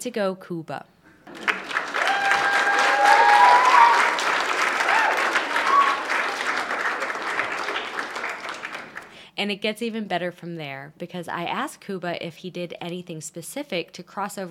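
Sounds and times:
speech: 0.0s - 1.0s, 9.4s - 14.4s
celebration applause sound effect: 1.2s - 9.2s.

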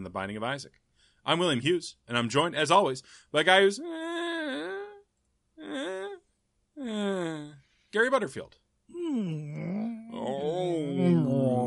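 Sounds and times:
speech: 0.1s - 4.0s, 6.8s - 11.6s
human voice imitating whale song: 3.8s - 6.2s, 6.8s - 7.6s, 8.9s - 11.6s.

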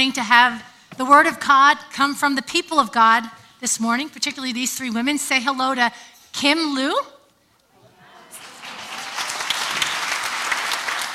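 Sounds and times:
speech: 0.0s - 7.2s
audience applause: 8.3s - 11.1s.

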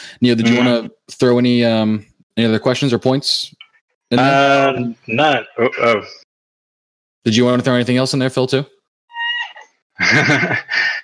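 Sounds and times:
speech: 0.2s - 6.2s, 7.2s - 8.8s, 10.0s - 11.0s
cat: 9.1s - 9.8s
laughter: 10.0s - 11.0s.

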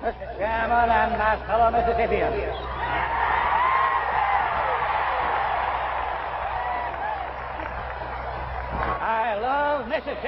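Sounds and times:
speech: 0.0s - 3.2s, 9.4s - 10.2s
crowd at a Mississippi football game cheering Governor Ross Barnett's speech: 2.5s - 9.0s.

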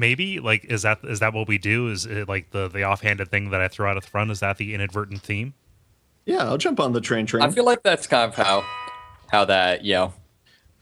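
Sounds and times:
speech: 0.0s - 5.6s, 6.2s - 10.2s
text message notification chime: 8.4s - 9.4s.

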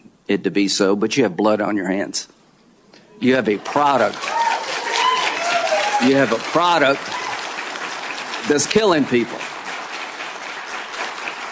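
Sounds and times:
speech: 0.3s - 2.4s, 3.2s - 4.4s, 6.0s - 7.2s, 8.4s - 9.5s
people applauding in hearing room: 3.2s - 11.5s.

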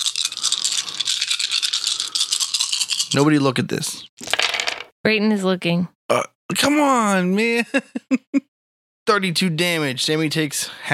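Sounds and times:
large handful of dice rattling: 0.0s - 3.4s, 4.2s - 4.9s
speech: 3.1s - 4.1s, 5.0s - 8.5s, 9.1s - 10.9s.

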